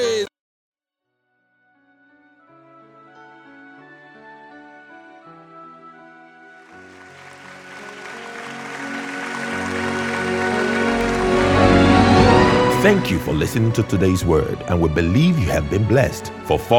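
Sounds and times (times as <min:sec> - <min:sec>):
audience clapping: 0:06.6 - 0:12.7
speech: 0:12.9 - 0:16.7.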